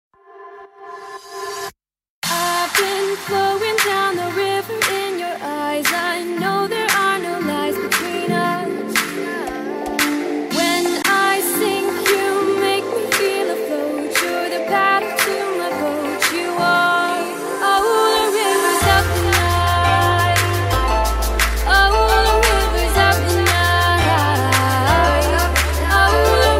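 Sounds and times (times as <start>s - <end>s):
music: 2.2s - 26.5s.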